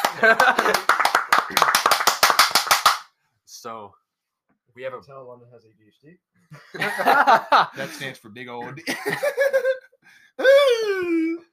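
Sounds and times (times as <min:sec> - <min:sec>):
laughter: 0:00.0 - 0:01.9, 0:06.5 - 0:11.3
clapping after a movie: 0:00.0 - 0:03.1
speech: 0:00.2 - 0:02.0, 0:04.8 - 0:09.8.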